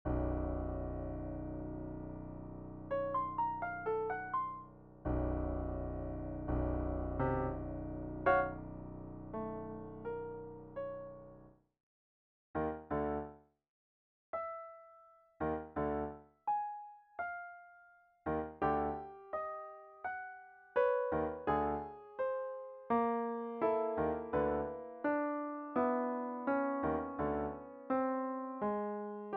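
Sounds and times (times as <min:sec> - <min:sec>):
piano: 0:00.0 - 0:11.6, 0:12.6 - 0:13.5, 0:14.4 - 0:29.3.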